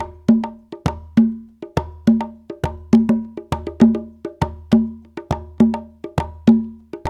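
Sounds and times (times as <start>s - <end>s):
Latin congas: 0.0s - 7.0s.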